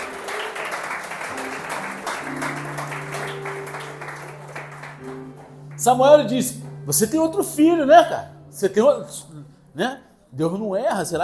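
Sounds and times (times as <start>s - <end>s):
audience applauding: 0.0s - 6.6s
speech: 5.8s - 11.2s.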